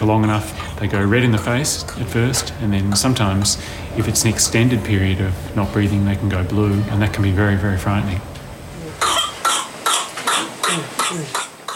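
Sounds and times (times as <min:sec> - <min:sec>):
speech: 0:00.0 - 0:08.3, 0:11.1 - 0:11.4
whooping cough coughing fit: 0:09.0 - 0:11.7.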